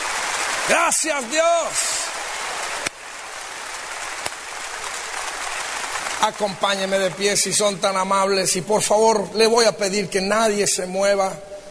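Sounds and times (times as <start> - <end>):
crowd applause: 0.0 - 7.9
speech: 0.7 - 1.9, 6.2 - 11.5.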